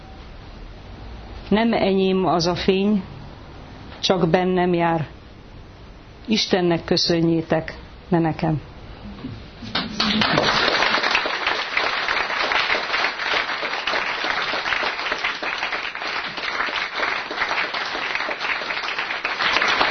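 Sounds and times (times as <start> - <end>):
speech: 1.5 - 3.1, 4.0 - 5.2, 6.3 - 10.3
audience applause: 9.7 - 19.8.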